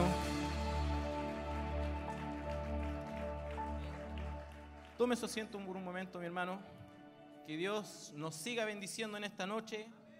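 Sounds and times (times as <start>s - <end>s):
audience applause: 0.0s - 6.0s
speech: 5.0s - 6.8s, 7.4s - 10.0s.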